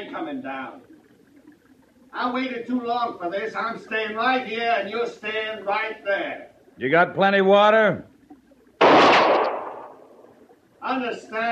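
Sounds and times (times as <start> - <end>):
speech: 0.2 - 1.0, 2.1 - 8.1, 10.8 - 11.5
pistol shot in a western standoff: 8.8 - 10.1.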